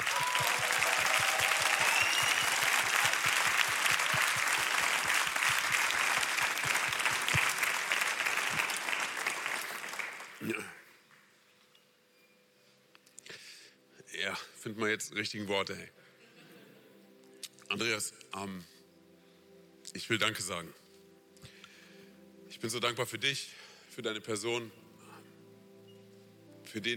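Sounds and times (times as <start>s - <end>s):
crowd clapping: 0.0s - 10.8s
speech: 14.8s - 16.0s, 17.8s - 18.7s, 20.1s - 20.8s, 22.6s - 24.8s, 26.8s - 26.9s.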